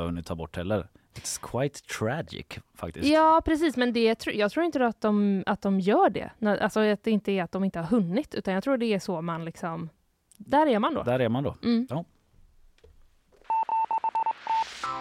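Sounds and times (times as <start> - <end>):
speech: 0.0 - 12.1
sci-fi space alarm with beeps and synthetic chiming tone: 13.5 - 14.9.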